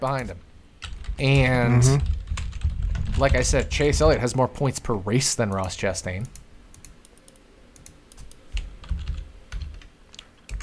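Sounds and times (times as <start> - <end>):
speech: 0.0 - 0.5, 1.2 - 2.2, 3.2 - 6.4
typing on a computer keyboard: 2.1 - 3.4, 5.5 - 10.6.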